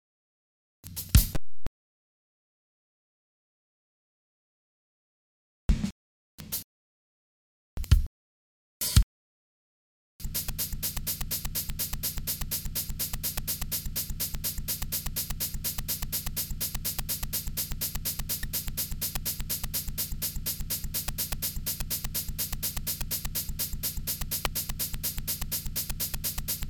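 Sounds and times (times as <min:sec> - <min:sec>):
Afro-Cuban drum groove: 0:00.9 - 0:01.4, 0:05.7 - 0:06.7, 0:07.8 - 0:08.1, 0:08.8 - 0:09.1, 0:10.2 - 0:26.6
Afro-Cuban bass groove: 0:10.2 - 0:26.6.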